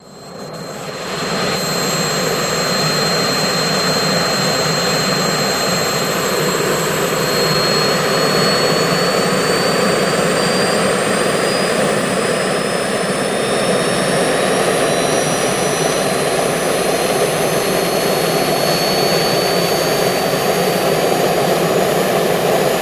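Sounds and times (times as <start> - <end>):
Jet Ranger jet helicopter idling and lifting off: 0.0 - 22.8.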